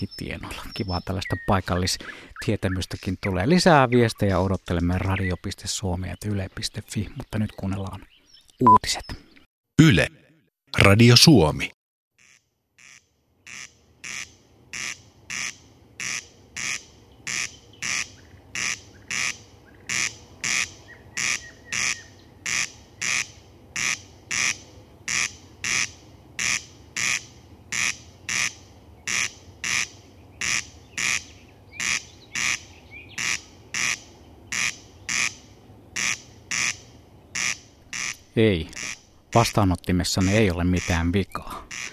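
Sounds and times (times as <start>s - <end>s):
speech: 0.0s - 11.8s, 38.4s - 41.6s
summer night bird calling: 12.2s - 39.5s, 40.1s - 41.9s.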